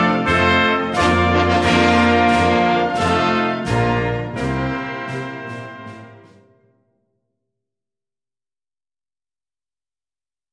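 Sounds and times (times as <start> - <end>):
prelude to a concert: 0.0 - 6.7.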